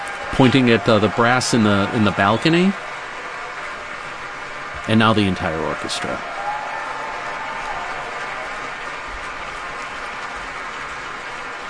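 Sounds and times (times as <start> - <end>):
concert hall audience applause at Powell Hall: 0.0 - 11.6
speech: 0.4 - 2.9, 4.9 - 6.3.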